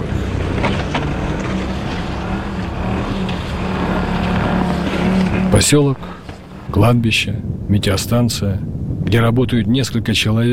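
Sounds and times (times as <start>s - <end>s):
snowmobiles driving over snow: 0.0s - 6.9s
speech: 5.6s - 10.5s.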